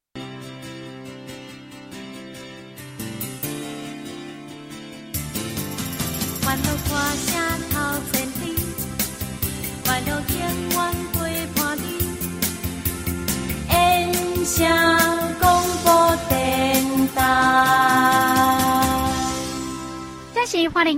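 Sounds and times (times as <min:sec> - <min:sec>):
jingle: 0:05.2 - 0:12.1, 0:13.3 - 0:20.8.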